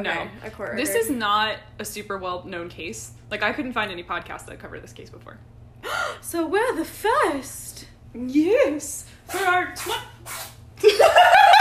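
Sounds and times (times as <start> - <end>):
speech: 0.0 - 11.4
cat sneezing: 9.2 - 10.8
laughter: 10.8 - 11.5.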